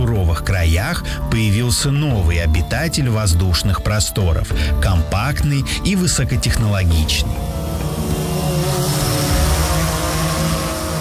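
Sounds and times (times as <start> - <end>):
speech: 0.4 - 8.7
cargo drone flying overhead: 6.8 - 10.9.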